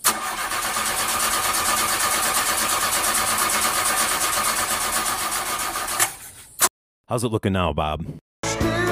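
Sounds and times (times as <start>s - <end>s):
stalled go-kart engine starting and running mid-track at a go-kart race: 0.0s - 6.3s
speech: 7.1s - 8.8s.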